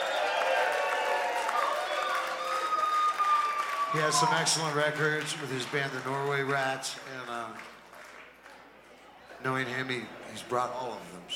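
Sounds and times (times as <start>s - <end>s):
audience cheering and whoops: 0.0s - 4.9s
audience applause: 0.0s - 9.4s
speech: 3.9s - 7.8s, 9.4s - 11.3s.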